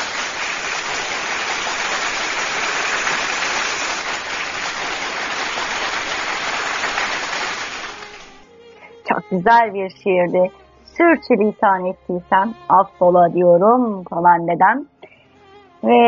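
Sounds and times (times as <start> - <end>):
applause: 0.0 - 8.5
speech: 9.3 - 14.9, 15.8 - 16.0.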